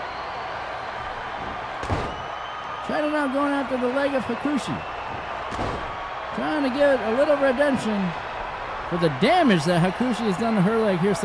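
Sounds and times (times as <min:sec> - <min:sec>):
crowd noise at a wrestling match: 0:00.0 - 0:11.2
wrestler thrown into the turnbuckle and clotheslined: 0:01.4 - 0:02.3, 0:05.1 - 0:06.0
speech: 0:02.9 - 0:04.9, 0:06.4 - 0:08.2, 0:08.9 - 0:11.2.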